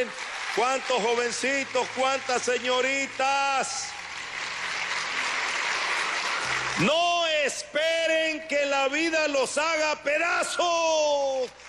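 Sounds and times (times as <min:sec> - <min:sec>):
speech: 0:00.0 - 0:04.0, 0:06.8 - 0:07.1, 0:07.7 - 0:11.6
audience applause at a Christian gathering honoring young people: 0:00.0 - 0:07.3.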